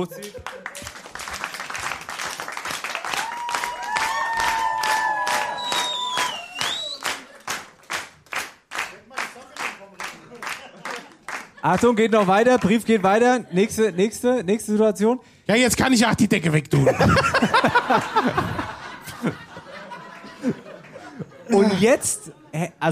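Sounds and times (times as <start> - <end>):
speech: 0.0 - 0.6, 11.6 - 18.6, 19.2 - 19.4, 21.5 - 22.9
laughter: 0.0 - 1.6, 6.8 - 7.8, 10.1 - 14.8, 16.7 - 22.5
audience clapping in time: 0.0 - 13.2
high calls or whistles: 5.4 - 7.2.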